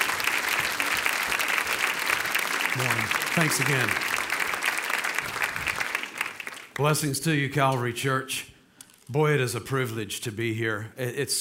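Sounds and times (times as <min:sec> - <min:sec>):
church congregation applauding to welcome a guest speaker: 0:00.0 - 0:07.1
speech: 0:02.8 - 0:04.2, 0:06.8 - 0:08.5, 0:09.1 - 0:11.3.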